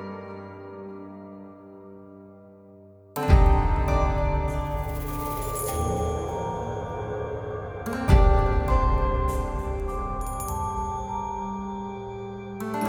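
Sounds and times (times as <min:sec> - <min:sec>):
music intro: 0:03.2 - 0:12.8.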